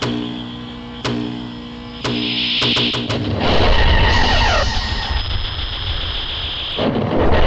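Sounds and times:
sci-fi heat ray sound effect firing: 1.1s - 7.4s.

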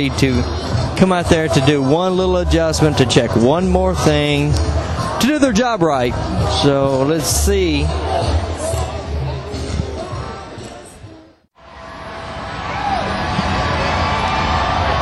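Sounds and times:
speech: 0.0s - 8.4s
restless festival crowd awaiting band: 0.0s - 15.0s.

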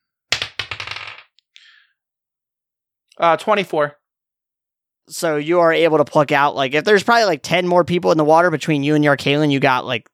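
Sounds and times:
dice rattling across a hard surface: 0.3s - 1.3s
speech: 3.2s - 4.0s, 5.1s - 10.1s.

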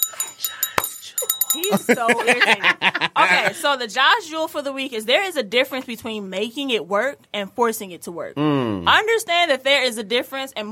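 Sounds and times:
small bright bell ringing: 0.0s - 2.4s
speech: 1.6s - 10.7s
laughter: 1.7s - 3.7s.

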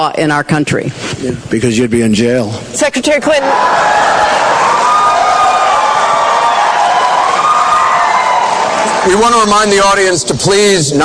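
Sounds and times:
speech: 0.0s - 4.4s, 9.0s - 11.0s
debate audience cheering and applauding: 3.4s - 9.9s.

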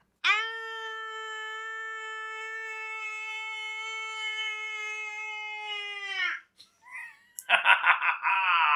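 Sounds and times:
spooky Halloween scream: 0.2s - 6.4s
laughter: 6.9s - 8.7s.

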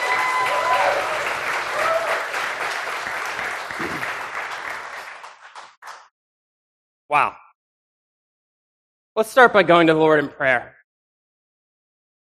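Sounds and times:
audience applauding: 0.0s - 6.1s
speech: 7.1s - 7.4s, 9.2s - 10.8s.

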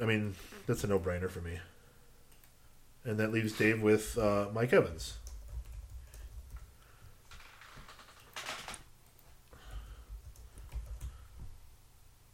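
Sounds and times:
speech: 0.0s - 1.8s, 3.0s - 5.2s
computer keyboard typing: 5.1s - 11.4s.

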